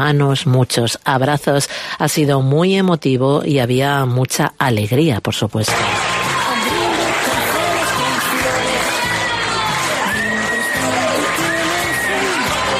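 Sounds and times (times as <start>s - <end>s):
speech: 0.0s - 6.2s
students cheering and applauding: 5.7s - 12.7s.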